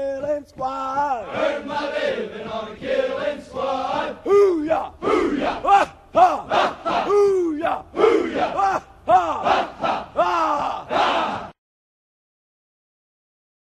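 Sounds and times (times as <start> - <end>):
Navy SEAL cadence chanting: 0.8 - 11.6.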